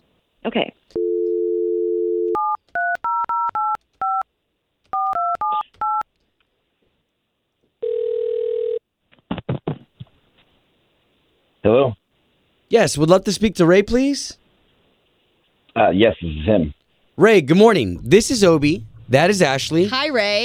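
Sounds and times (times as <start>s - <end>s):
speech: 0.5s - 0.8s, 12.7s - 14.4s, 15.8s - 20.4s
telephone dial tone: 1.0s - 2.6s, 7.8s - 8.8s
telephone keypad tones: 2.2s - 4.2s, 4.9s - 6.1s.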